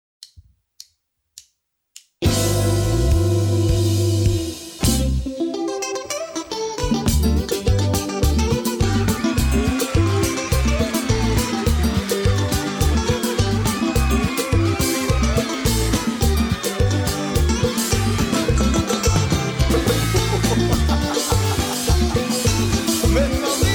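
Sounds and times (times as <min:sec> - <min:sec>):
compas music at a beach hut: 0:02.2 - 0:23.7
laughter: 0:08.6 - 0:23.7.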